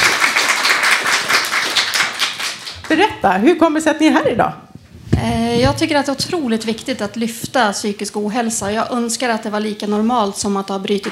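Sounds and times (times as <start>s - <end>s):
audience applause: 0.0s - 2.9s
speech: 2.9s - 4.6s, 5.2s - 11.1s.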